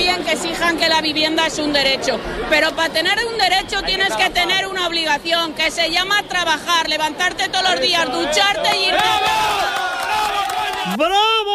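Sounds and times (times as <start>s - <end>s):
speech: 0.3s - 9.8s, 10.8s - 11.5s
crowd cheering and shouting at a rally: 8.0s - 11.5s.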